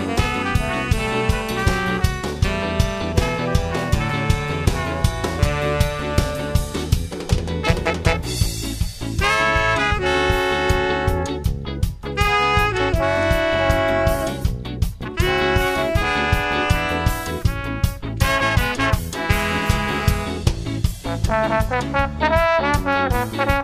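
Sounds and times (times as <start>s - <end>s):
ska horn section playing: 0.0s - 23.6s.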